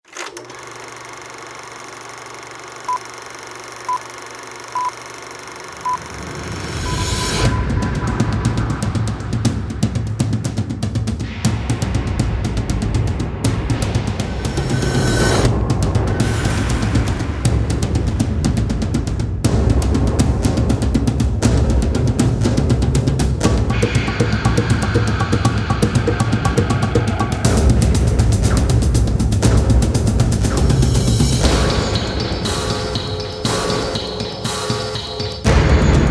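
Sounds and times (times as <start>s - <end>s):
cinematic drums: 5.8s - 36.0s.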